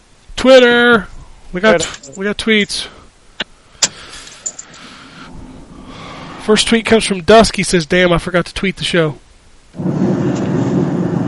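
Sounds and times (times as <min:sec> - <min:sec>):
speech: 0:00.4 - 0:03.0, 0:06.5 - 0:10.1
thunder rumbling: 0:09.8 - 0:11.2.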